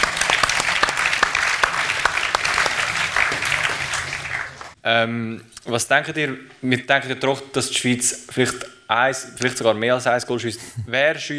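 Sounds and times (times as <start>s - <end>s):
audience applause: 0.0s - 4.8s
speech: 4.8s - 11.3s.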